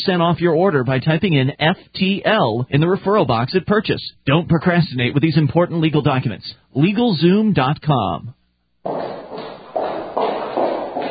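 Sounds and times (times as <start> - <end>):
speech: 0.0 - 9.2
footsteps walking on a street: 8.9 - 11.0.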